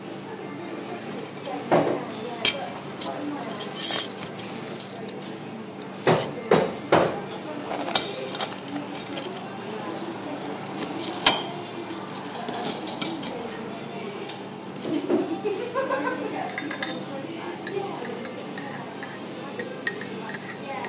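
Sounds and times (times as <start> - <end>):
cafe ambience: 0.0 - 15.8, 16.4 - 20.8
laughter: 14.8 - 16.6.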